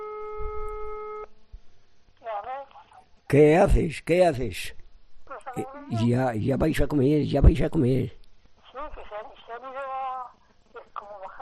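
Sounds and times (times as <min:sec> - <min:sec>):
telephone line tone: 0:00.0 - 0:01.3
person's voice: 0:03.3 - 0:04.8, 0:05.4 - 0:08.2
speech: 0:03.3 - 0:04.8, 0:05.6 - 0:08.2.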